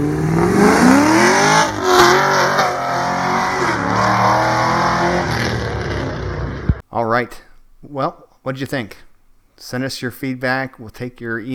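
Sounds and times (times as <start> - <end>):
Camaro engine roaring on a drive-by pass: 0.0 - 6.8
speech: 8.0 - 11.5.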